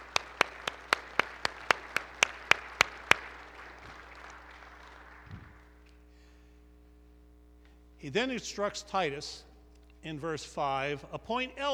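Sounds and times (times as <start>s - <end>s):
audience clapping: 0.0s - 6.1s
speech: 8.0s - 11.7s.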